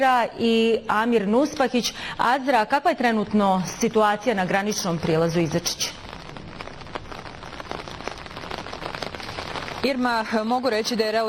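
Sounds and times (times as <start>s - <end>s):
speech: 0.0s - 6.0s, 9.8s - 11.2s
steady rain at the Izačić border crossing: 3.7s - 11.2s.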